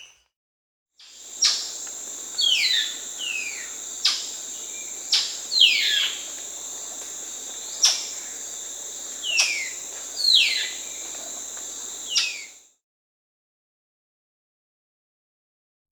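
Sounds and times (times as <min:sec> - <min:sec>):
Spot-winged Antshrike Pygiptila stellaris calling in Peru: 0:01.2 - 0:12.6.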